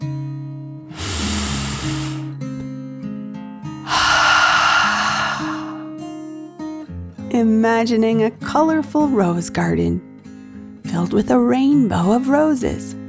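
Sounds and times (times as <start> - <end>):
deep breath in and out voiced as a dragon's breath: 0.9 - 2.4, 3.8 - 6.1
speech: 7.4 - 10.1, 10.9 - 13.0.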